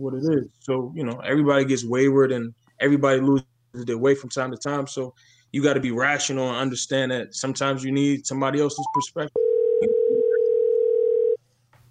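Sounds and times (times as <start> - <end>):
speech: 0.0 - 10.0
telephone line tone as a caller calls in to a show: 8.8 - 11.4.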